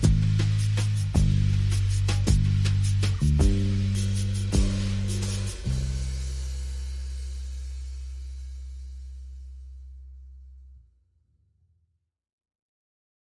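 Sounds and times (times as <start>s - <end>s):
drums: 0.0s - 9.2s
bass: 0.0s - 11.4s.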